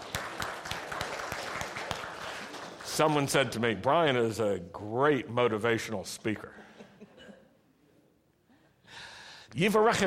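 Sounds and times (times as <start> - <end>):
small group applauding a speaker: 0.0 - 3.1
speech: 3.0 - 6.6, 9.6 - 10.0.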